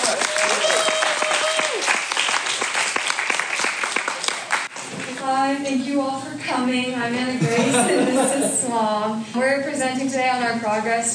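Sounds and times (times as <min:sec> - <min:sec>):
audience round of applause: 0:00.0 - 0:05.1
speech: 0:05.9 - 0:11.1
laughter: 0:07.4 - 0:08.8.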